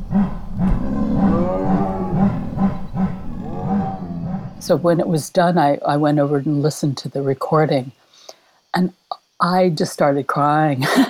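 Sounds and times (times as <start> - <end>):
chorus of big cats chuffing and moaning: 0.0 - 5.3
speech: 4.7 - 8.0, 8.7 - 11.0.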